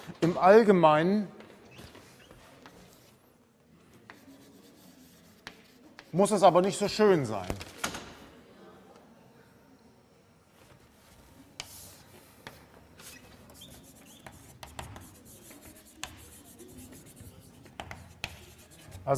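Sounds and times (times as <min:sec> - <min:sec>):
speech: 0:00.2 - 0:01.4, 0:06.1 - 0:07.7
writing on a board: 0:03.9 - 0:06.3, 0:11.6 - 0:19.1.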